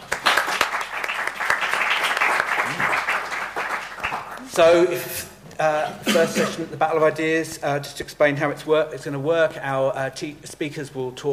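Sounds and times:
crowd applause: 0.0 - 4.5
speech: 4.6 - 11.3.

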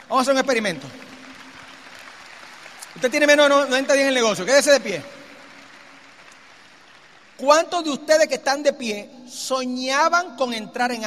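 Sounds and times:
audience applause: 0.0 - 7.4
speech: 0.1 - 1.1, 3.0 - 5.2, 7.4 - 11.0.

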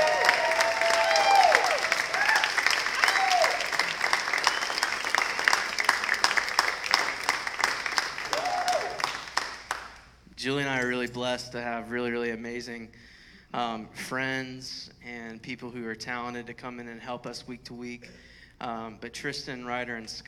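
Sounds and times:
audience applause: 0.0 - 10.0
speech: 11.3 - 20.2.

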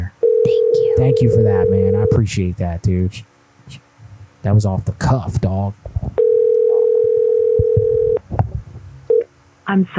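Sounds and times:
telephone call tone: 0.2 - 2.2, 6.2 - 8.2
speech: 1.0 - 3.8, 4.4 - 5.9, 9.7 - 9.9
low thumps and rustling: 7.6 - 9.0.

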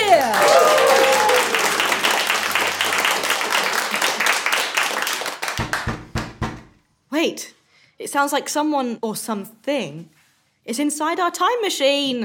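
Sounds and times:
audience applause: 0.0 - 6.0
speech: 7.2 - 12.2.

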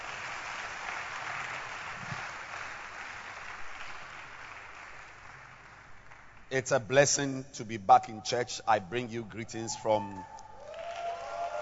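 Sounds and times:
audience clapping hands: 0.0 - 7.2, 8.9 - 11.6
speech: 6.5 - 10.4.

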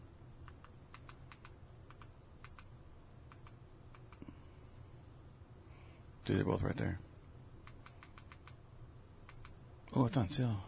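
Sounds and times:
typing on a computer keyboard: 0.4 - 2.7, 3.3 - 4.2, 7.6 - 8.6, 9.3 - 9.6
speech: 6.3 - 7.1, 10.0 - 10.6.

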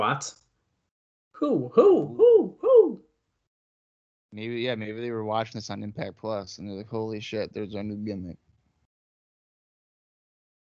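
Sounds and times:
speech: 0.0 - 0.4, 1.4 - 3.0, 4.3 - 8.4
person imitating owl hoots: 1.4 - 3.0.

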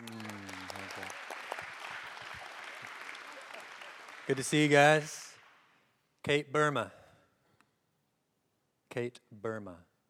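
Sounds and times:
audience clapping in welcome: 0.0 - 5.9
speech: 4.3 - 5.2, 6.2 - 7.0, 9.0 - 9.9.

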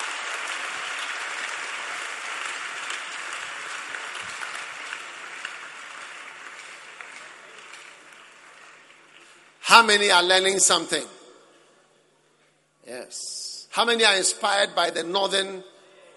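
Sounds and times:
audience clapping hands: 0.0 - 10.1
speech: 9.7 - 11.1, 13.1 - 15.7.

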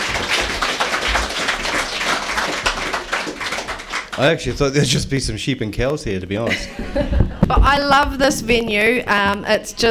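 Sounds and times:
audience applause: 0.0 - 4.4
speech: 4.2 - 9.8
laughter: 6.4 - 7.5.

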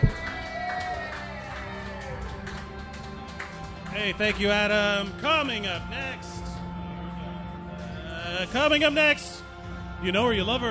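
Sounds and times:
audience cheering: 0.0 - 2.6
audience applause: 0.0 - 4.5
speech: 4.0 - 6.4, 8.4 - 9.3, 10.0 - 10.7.

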